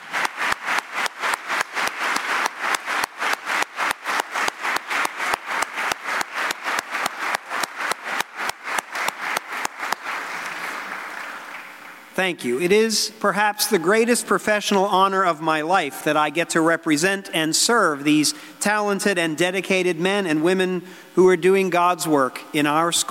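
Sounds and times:
audience applauding: 0.0s - 12.1s
speech: 12.2s - 23.0s.

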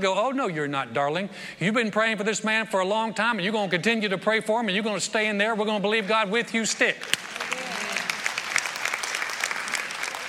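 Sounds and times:
speech: 0.0s - 7.4s
audience applause: 7.0s - 10.2s.

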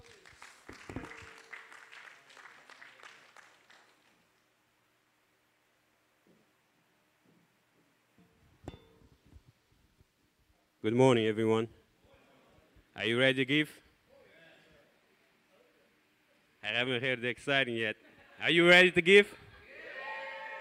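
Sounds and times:
audience hand clapping: 0.0s - 4.4s
speech: 10.8s - 11.8s, 13.0s - 13.8s, 16.7s - 19.4s.

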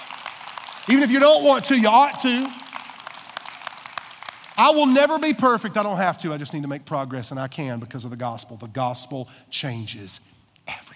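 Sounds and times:
audience clapping: 0.0s - 5.5s
speech: 0.8s - 2.6s, 4.6s - 10.8s.

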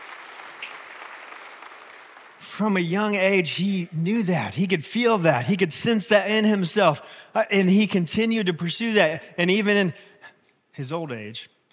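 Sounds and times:
audience applause: 0.0s - 2.4s
speech: 2.6s - 10.1s, 10.8s - 11.6s.

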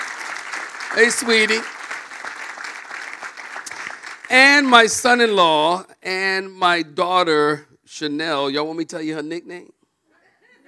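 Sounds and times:
audience clapping: 0.0s - 5.3s
speech: 0.9s - 1.8s, 4.3s - 9.8s.

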